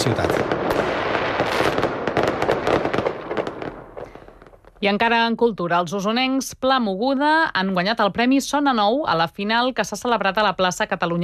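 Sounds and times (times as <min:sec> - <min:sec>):
speech: 0:00.0 - 0:00.4, 0:04.8 - 0:11.2
castell de focs fireworks at the Punta del Miracle crackling and bursting: 0:00.0 - 0:05.2.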